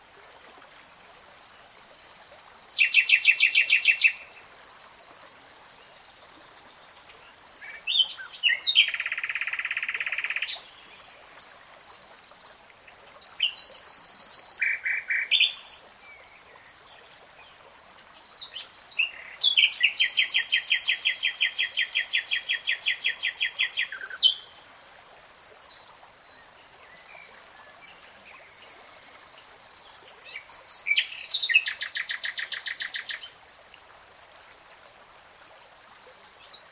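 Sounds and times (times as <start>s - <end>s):
faint background hiss: 0.0s - 36.6s
nightingale song: 0.8s - 4.4s, 7.4s - 10.7s, 13.2s - 16.7s, 18.2s - 24.5s, 26.4s - 33.8s.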